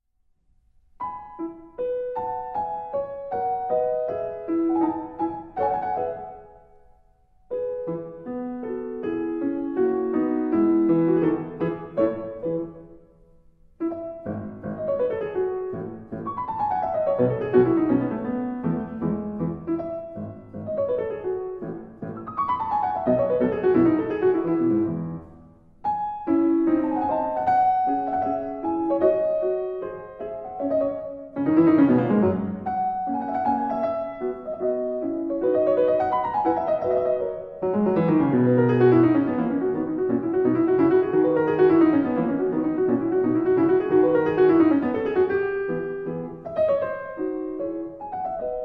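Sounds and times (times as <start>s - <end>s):
sonata: 0.0s - 48.6s.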